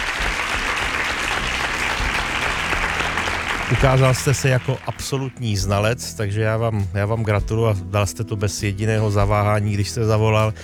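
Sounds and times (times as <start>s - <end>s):
clapping applause: 0.0s - 5.8s
speech: 3.7s - 10.6s.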